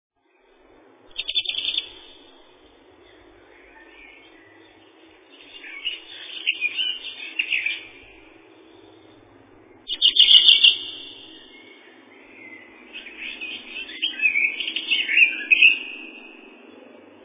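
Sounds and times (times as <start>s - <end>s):
Greenish warbler song of high twittering notes, Phylloscopus trochiloides: 0.2s - 17.2s.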